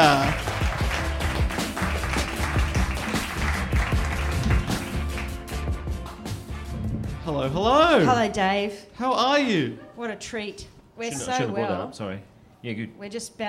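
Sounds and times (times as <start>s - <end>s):
audience applause at a live comedy show: 0.0s - 6.2s
speech: 7.4s - 13.4s.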